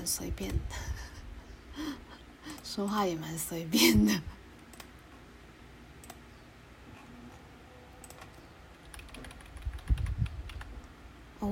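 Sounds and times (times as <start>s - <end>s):
speech: 0.0s - 1.0s, 1.8s - 4.4s
computer keyboard typing: 8.0s - 10.8s.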